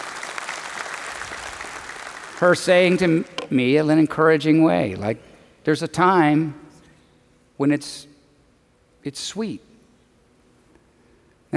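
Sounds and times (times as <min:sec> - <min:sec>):
audience applause: 0:00.0 - 0:03.4
speech: 0:02.4 - 0:06.6, 0:07.6 - 0:08.1, 0:09.0 - 0:09.7.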